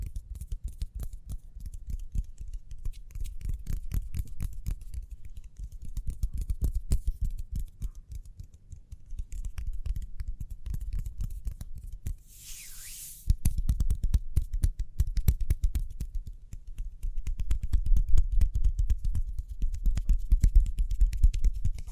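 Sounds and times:
quick hand taps and scratchy clicks: 0.0 - 21.9
short brighter hiss: 12.3 - 13.3.

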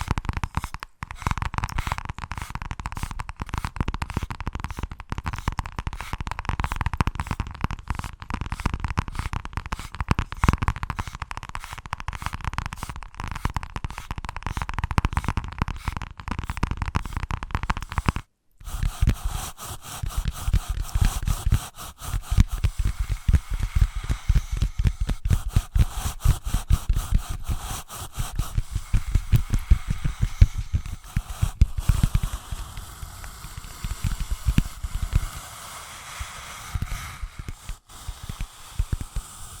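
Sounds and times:
invisible tapping, scratching and tracing: 0.0 - 39.2.

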